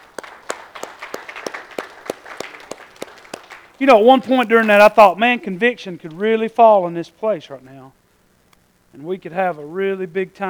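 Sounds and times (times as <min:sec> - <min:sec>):
crowd clapping hands in rhythm: 0:00.0 - 0:05.1
speech: 0:03.8 - 0:08.0, 0:08.9 - 0:10.4.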